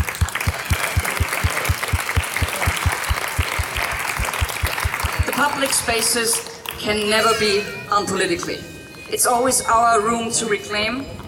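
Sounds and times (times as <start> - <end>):
audience applause: 0.0 - 6.1
speech: 5.4 - 11.2.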